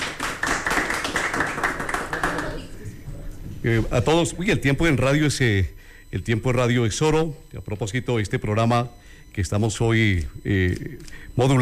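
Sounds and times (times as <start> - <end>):
applause: 0.0 - 2.7
speech: 3.6 - 11.6.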